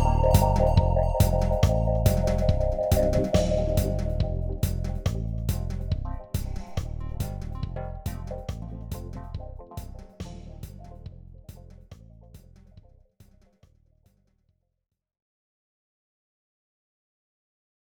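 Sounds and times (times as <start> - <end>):
dub music: 0.0 - 11.7.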